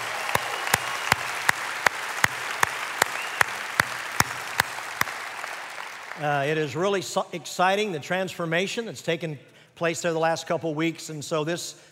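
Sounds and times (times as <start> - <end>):
rhythmic sharp claps: 0.0 - 6.4
church audience applause welcoming the East Valley campus: 0.0 - 6.6
speech: 6.2 - 11.8.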